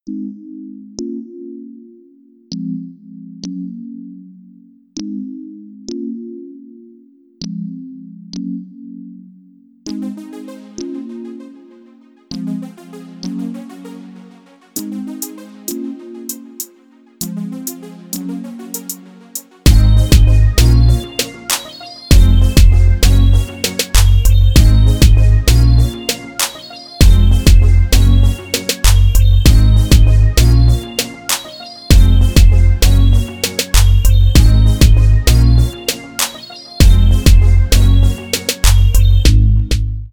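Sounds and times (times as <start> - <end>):
instrumental music: 9.9 - 40.1.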